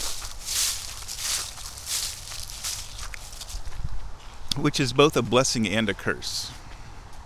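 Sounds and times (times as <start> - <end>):
footsteps through fallen cottonwood leaves on a forest floor: 0.0 - 4.4
speech: 4.6 - 6.6.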